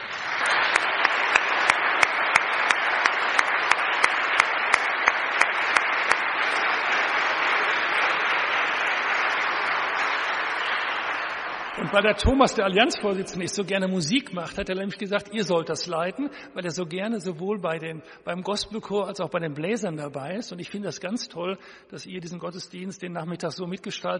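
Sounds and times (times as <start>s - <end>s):
audience applause: 0.0s - 13.4s
speech: 11.8s - 24.1s.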